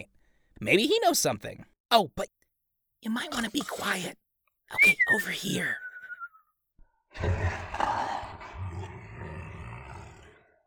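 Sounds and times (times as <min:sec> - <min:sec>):
speech: 0:00.0 - 0:02.4, 0:03.0 - 0:05.8, 0:07.2 - 0:07.6
sleeping creature's deep rumbling growl: 0:07.2 - 0:10.6.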